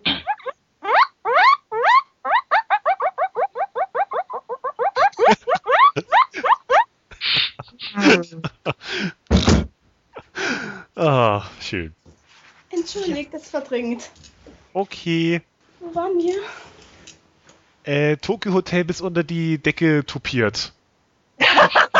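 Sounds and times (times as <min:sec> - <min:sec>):
guinea pigs squeaking: 0:00.0 - 0:06.9
laughter: 0:05.0 - 0:09.2, 0:21.4 - 0:21.9
speech: 0:11.7 - 0:12.0, 0:12.8 - 0:16.7, 0:17.8 - 0:20.8.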